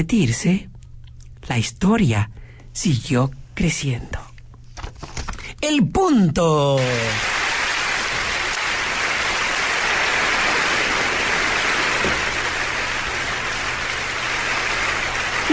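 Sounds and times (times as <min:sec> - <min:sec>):
speech: 0:00.0 - 0:00.7, 0:01.4 - 0:04.3, 0:05.6 - 0:07.3
audience applause: 0:06.8 - 0:15.5.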